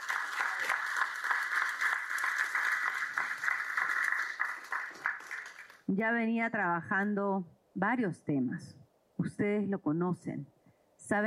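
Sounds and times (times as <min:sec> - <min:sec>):
audience applause: 0:00.0 - 0:05.8
speech: 0:05.9 - 0:11.2.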